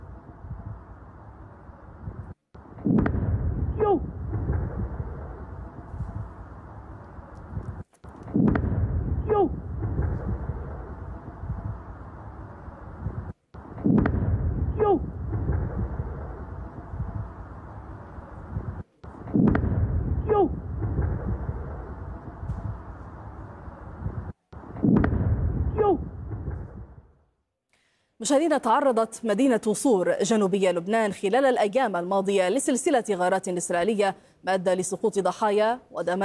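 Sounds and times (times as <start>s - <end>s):
interceptions of rockets from Lebanon over the Upper Galilee: 2.9s - 5.5s, 8.4s - 11.8s, 13.0s - 17.7s, 18.5s - 23.0s, 24.0s - 27.1s
speech: 28.3s - 36.2s.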